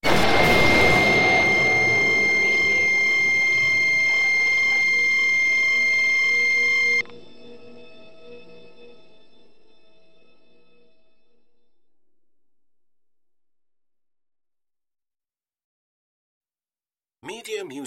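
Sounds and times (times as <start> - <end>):
sudden extraterrestrial appearance effect: 0.0 - 7.0.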